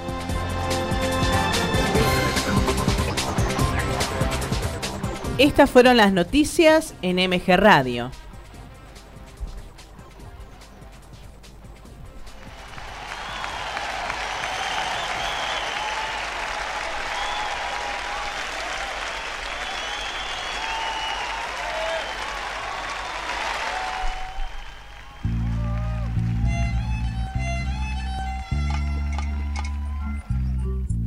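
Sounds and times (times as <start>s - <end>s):
crowd applauding: 0.0s - 5.6s, 12.2s - 30.9s
speech: 5.4s - 8.2s.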